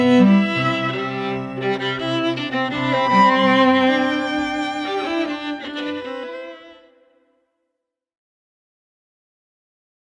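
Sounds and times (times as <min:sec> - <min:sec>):
string trio playing: 0:00.0 - 0:07.0.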